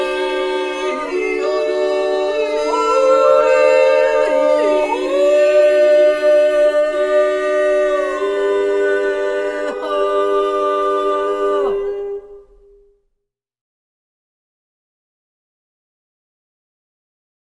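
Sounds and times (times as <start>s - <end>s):
yodeling trio: 0.0s - 12.9s.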